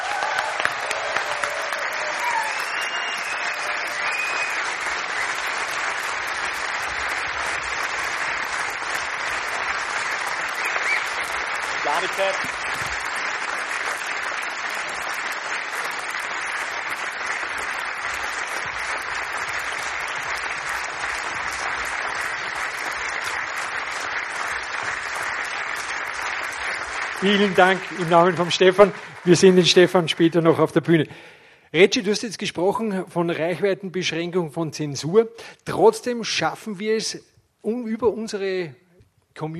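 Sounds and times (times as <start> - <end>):
audience applause: 0.0 - 30.9
speech: 12.0 - 12.8, 27.2 - 38.8, 39.4 - 39.5.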